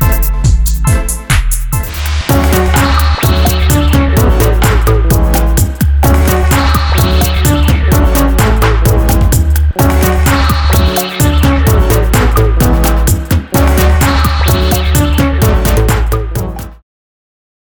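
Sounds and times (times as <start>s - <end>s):
future dub music: 0.0s - 16.8s.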